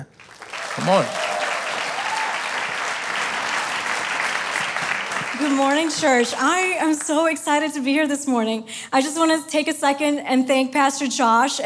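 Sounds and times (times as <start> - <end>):
speech: 0.0 - 1.3, 5.4 - 11.6
church congregation clapping to welcome a new pastor: 0.0 - 7.2.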